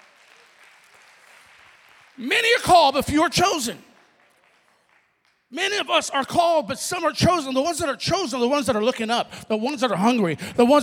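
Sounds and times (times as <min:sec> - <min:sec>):
audience clapping: 0:00.0 - 0:05.8
speech: 0:02.2 - 0:03.9, 0:05.5 - 0:10.8.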